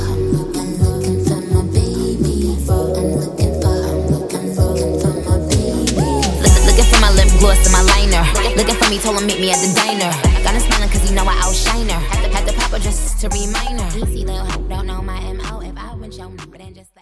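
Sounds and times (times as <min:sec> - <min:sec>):
scratched bass: 0:00.0 - 0:16.8.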